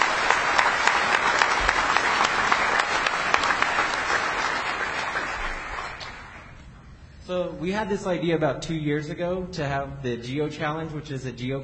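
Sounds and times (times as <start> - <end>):
audience applause: 0.0 - 6.6
speech: 7.4 - 11.6.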